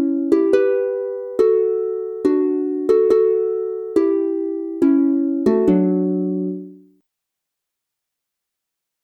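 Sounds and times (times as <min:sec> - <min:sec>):
harp playing songs: 0:00.0 - 0:07.0.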